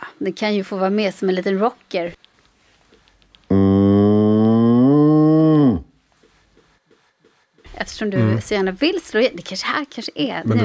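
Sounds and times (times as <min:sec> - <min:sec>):
speech: 0:00.2 - 0:02.2, 0:08.0 - 0:10.6
calm cow mooing: 0:03.5 - 0:05.8.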